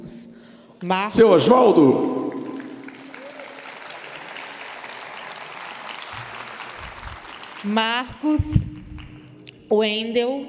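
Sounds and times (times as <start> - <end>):
speech: 0.8 - 2.1, 7.6 - 8.7, 9.7 - 10.4
large crowd applauding for the musicians: 1.9 - 9.3.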